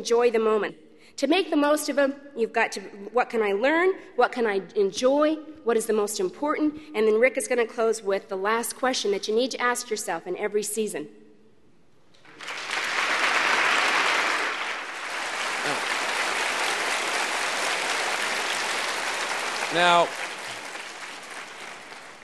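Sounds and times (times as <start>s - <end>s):
speech: 0.0s - 11.2s, 19.8s - 20.2s
crowd applauding: 12.2s - 22.2s.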